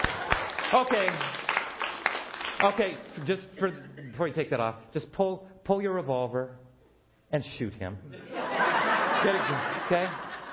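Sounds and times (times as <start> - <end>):
audience applause: 0.0 - 3.4
speech: 0.7 - 1.4, 2.6 - 6.6, 7.3 - 8.3, 9.2 - 10.3
laughter: 8.1 - 10.5.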